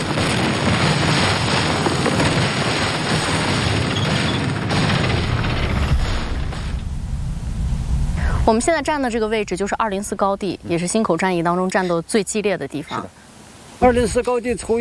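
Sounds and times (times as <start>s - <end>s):
booms: 0.0s - 11.2s
military aircraft engines roaring in an air raid: 7.0s - 10.9s
speech: 8.5s - 13.2s, 13.8s - 14.8s.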